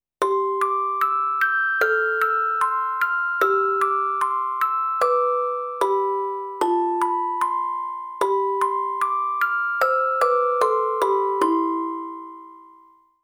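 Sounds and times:
music box: 0:00.2 - 0:13.2.

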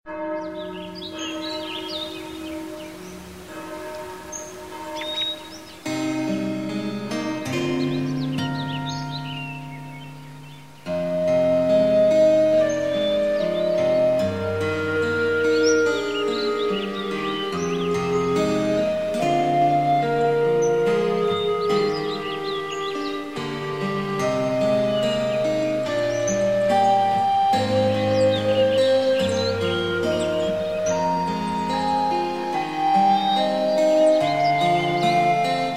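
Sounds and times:
peaceful guitar: 0:00.1 - 0:35.7.

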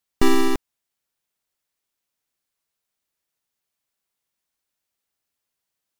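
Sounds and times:
start-up chime: 0:00.2 - 0:00.6.

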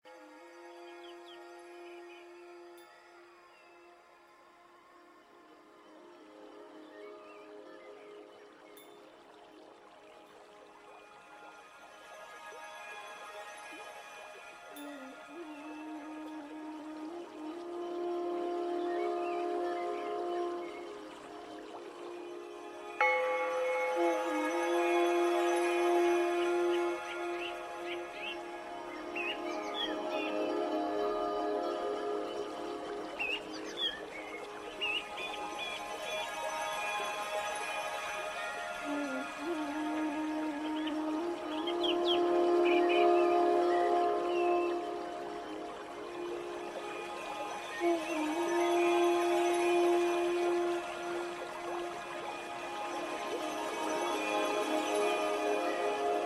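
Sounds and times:
oriental meditation music: 0:00.0 - 0:56.2.

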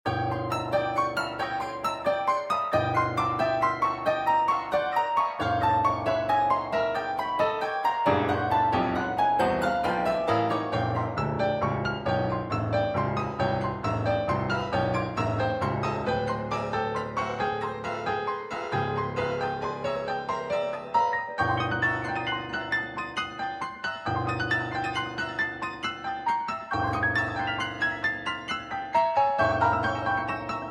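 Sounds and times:
dramatic piano stems: 0:00.1 - 0:30.7.

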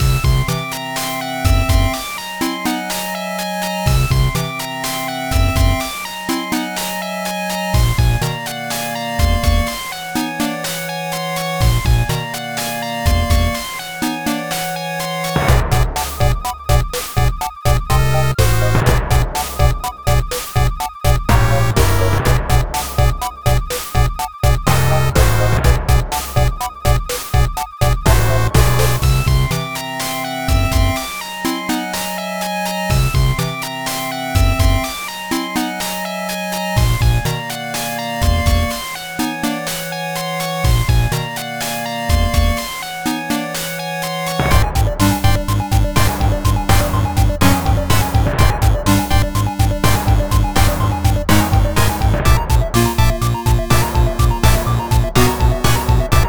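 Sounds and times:
cave background music: 0:00.0 - 0:56.2.

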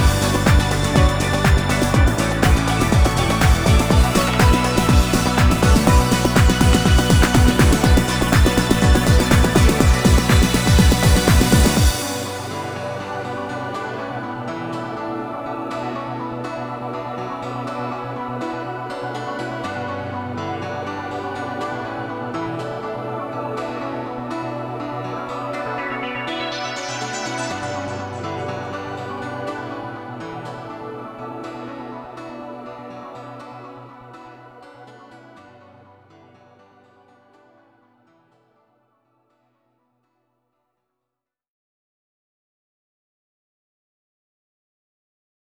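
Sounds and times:
instrumental music without vocals: 0:00.0 - 0:35.2.

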